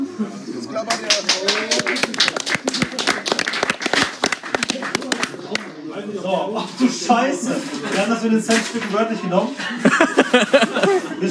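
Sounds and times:
speech: 0.2 - 2.0, 6.6 - 11.3
audience applause: 0.9 - 5.7
laughter: 9.6 - 11.3.

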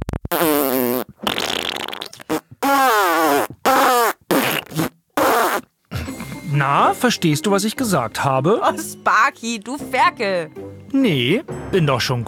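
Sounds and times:
person imitating herring fart sounds: 0.0 - 6.3
speech: 6.6 - 12.2.

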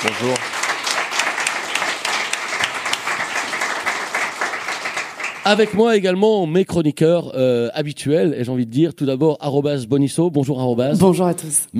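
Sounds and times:
speech: 0.0 - 0.5, 5.5 - 11.7
audience applause: 0.0 - 6.0.

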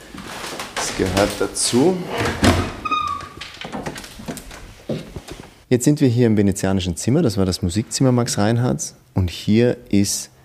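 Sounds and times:
creaking old wooden door: 0.7 - 5.6
speech: 1.0 - 2.7, 5.7 - 10.4.

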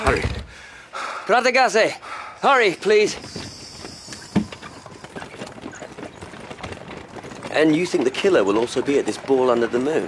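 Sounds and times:
speech: 0.1 - 0.4, 1.3 - 3.4, 7.6 - 10.0
horse hooves clip-clopping drawing a hackney cab: 2.5 - 10.0.

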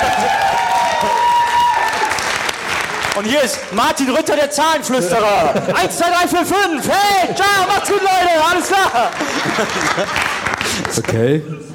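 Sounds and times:
audience applause: 0.0 - 4.0, 7.6 - 11.2
audience cheering: 0.0 - 4.0, 6.8 - 10.6
speech: 3.2 - 11.7
laughter: 4.8 - 11.7.

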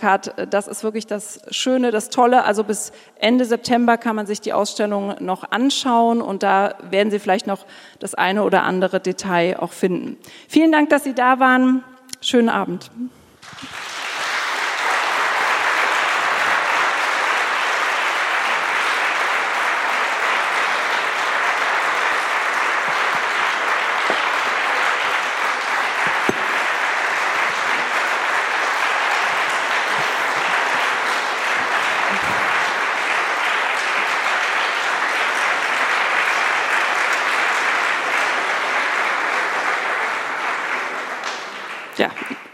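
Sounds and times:
speech: 0.0 - 13.9
audience applause: 13.4 - 42.5.

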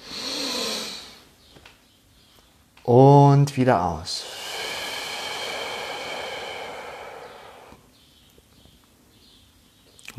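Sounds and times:
slow deep inhale: 0.0 - 1.3, 4.1 - 8.0
speech: 2.9 - 4.3.

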